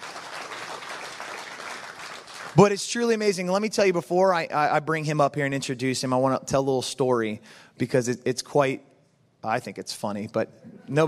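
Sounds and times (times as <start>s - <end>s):
audience clapping: 0.0s - 3.0s
speech: 2.6s - 11.0s.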